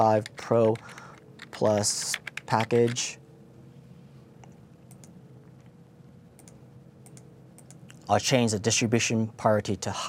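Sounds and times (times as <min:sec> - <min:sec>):
speech: 0:00.0 - 0:01.0, 0:01.6 - 0:03.2, 0:08.1 - 0:10.0
low steady hum: 0:00.0 - 0:10.0
faint keystrokes on a computer keyboard typing a share name: 0:00.2 - 0:03.0.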